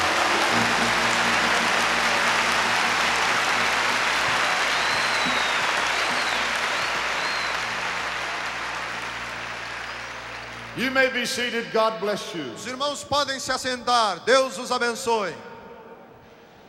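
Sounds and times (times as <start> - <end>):
audience applauding: 0.0 - 11.2
speech: 10.9 - 15.5.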